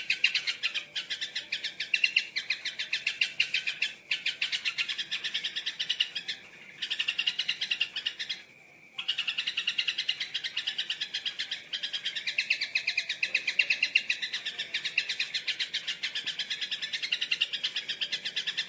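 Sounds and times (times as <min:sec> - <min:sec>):
Yellow-vented bulbul singing a long rapid chatter of harsh bubbly notes: 0:00.0 - 0:18.6.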